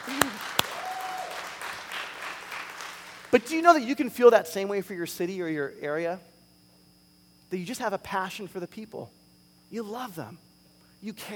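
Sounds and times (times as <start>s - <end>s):
audience clapping: 0.0s - 3.6s
speech: 3.3s - 6.3s, 7.5s - 11.3s.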